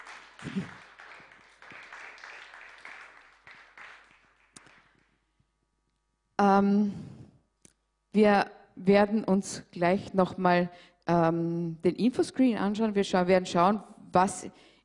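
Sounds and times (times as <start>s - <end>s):
audience applause: 0.0s - 5.0s
speech: 6.6s - 7.0s, 8.2s - 14.7s.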